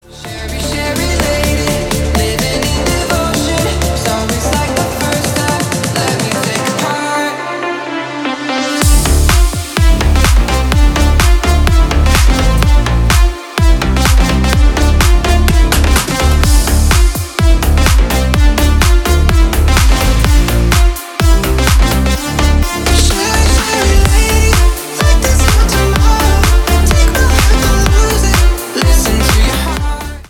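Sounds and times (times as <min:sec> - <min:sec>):
club remix music: 0:00.0 - 0:30.2.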